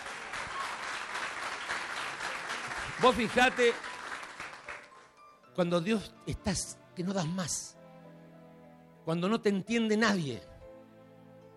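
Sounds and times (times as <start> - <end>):
audience applause: 0.0 - 5.1
speech: 3.0 - 3.9, 5.6 - 7.8, 9.0 - 10.5.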